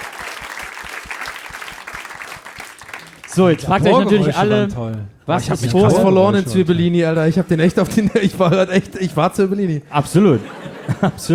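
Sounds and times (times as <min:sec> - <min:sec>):
audience applause: 0:00.0 - 0:04.4
speech: 0:03.4 - 0:11.3
laughter: 0:07.5 - 0:11.3.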